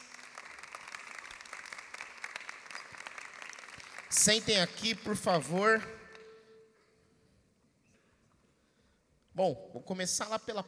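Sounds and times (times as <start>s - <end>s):
audience applause: 0.0s - 4.6s
speech: 4.1s - 6.0s, 9.4s - 10.6s.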